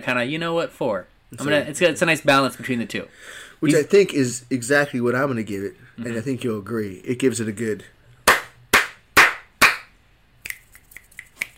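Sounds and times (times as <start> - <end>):
speech: 0.0 - 8.0
hand claps: 8.2 - 11.5
light finger snaps: 10.4 - 11.5.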